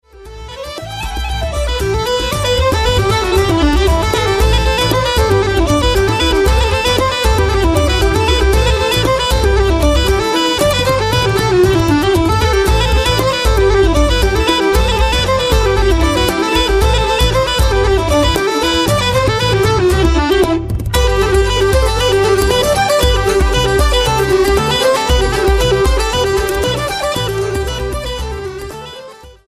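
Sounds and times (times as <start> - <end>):
dub music: 0.1 - 29.3.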